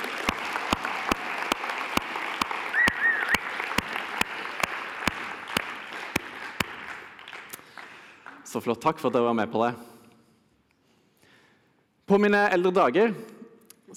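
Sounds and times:
audience applause: 0.0 - 8.5
speech: 8.6 - 9.9, 12.2 - 13.3.

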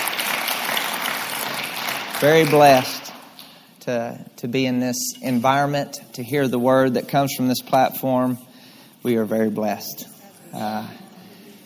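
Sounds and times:
audience hand clapping for pastors: 0.0 - 3.6
speech: 2.2 - 3.0, 3.9 - 11.0.

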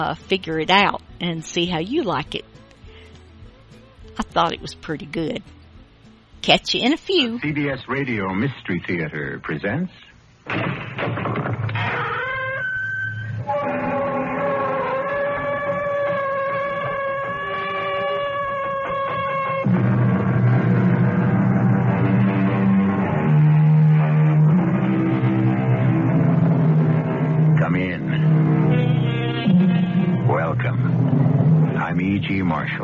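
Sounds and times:
speech: 0.0 - 2.6, 4.2 - 5.6, 6.4 - 10.8
sustained tonal opening: 11.8 - 32.8
tractor trailer truck on the freeway, radio drama sound effect: 13.5 - 32.8.

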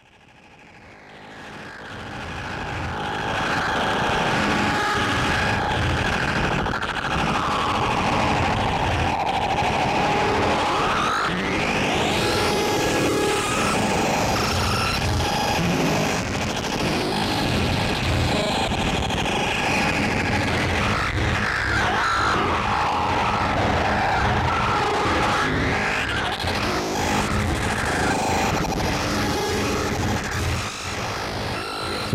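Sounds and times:
loud buzzy synthesized square wave tones: 2.5 - 32.1.

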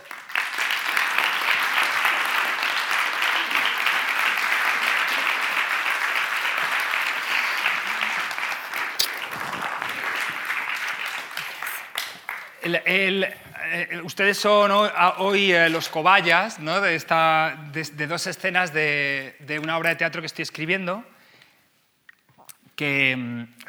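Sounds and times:
audience applause: 0.0 - 12.8
speech: 12.7 - 21.1, 22.8 - 23.6.

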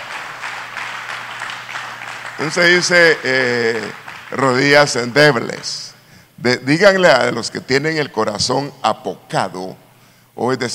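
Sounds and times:
audience applause: 0.0 - 5.6
speech: 2.4 - 5.8, 6.4 - 9.8, 10.4 - 10.7.

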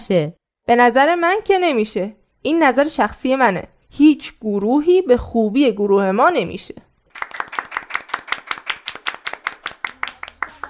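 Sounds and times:
speech: 0.1 - 6.8
hand clapping: 7.1 - 10.6.

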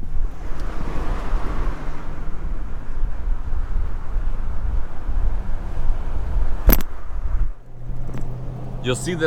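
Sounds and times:
wind rushing past a camera held out a car window: 0.0 - 8.9
sharp click: 6.6 - 6.9
speech: 8.9 - 9.2.

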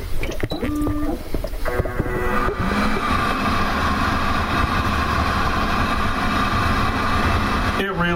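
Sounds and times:
toilet seat dryer blowing air: 0.0 - 8.1.

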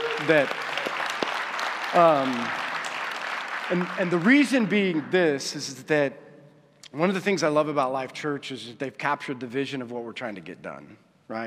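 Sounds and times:
person cheering: 0.0 - 0.6
audience applause: 0.0 - 5.6
speech: 0.2 - 0.7, 1.9 - 2.6, 3.7 - 6.2, 6.9 - 11.4.

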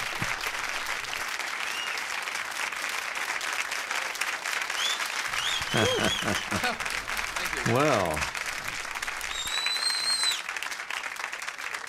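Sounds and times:
crowd applause at the end of a 1970 recording: 0.0 - 11.8
high whistle: 4.8 - 6.2, 9.3 - 10.4
laughter: 5.3 - 8.4
speech: 5.7 - 8.4.

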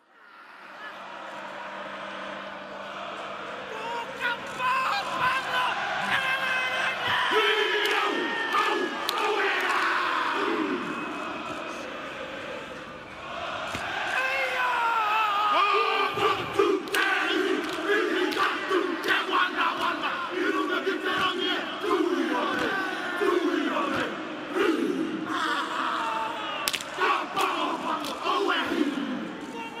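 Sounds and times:
group performing a haka: 0.7 - 29.7.

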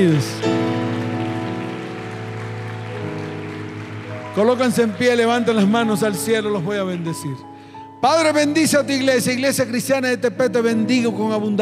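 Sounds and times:
speech: 0.0 - 0.5, 4.4 - 11.6
audience applauding in welcome: 0.4 - 7.4.

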